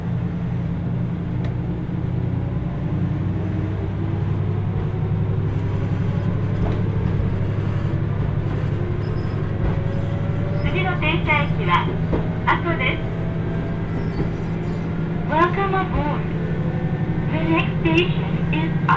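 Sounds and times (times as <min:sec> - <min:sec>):
Kyushu Odan limited express engine drone on the Hohi Line: 0:00.0 - 0:18.9
voices: 0:10.6 - 0:13.2, 0:15.3 - 0:16.4, 0:17.2 - 0:18.9.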